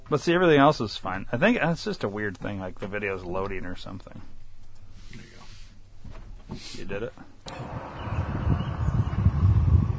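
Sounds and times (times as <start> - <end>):
speech: 0.1 - 4.4, 6.5 - 8.0
wind blowing on outdoor camera microphone: 7.5 - 9.9.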